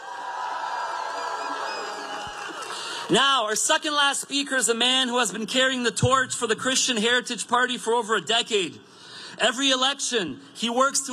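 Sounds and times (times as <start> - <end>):
cheers and whoops: 0.0 - 3.1
audience applause: 0.0 - 3.2
speech: 3.1 - 11.1.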